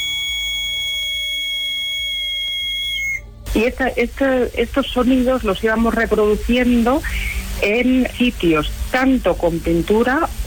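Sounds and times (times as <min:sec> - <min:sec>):
intermittent whistles: 0:00.0 - 0:03.3
speech: 0:03.6 - 0:10.4.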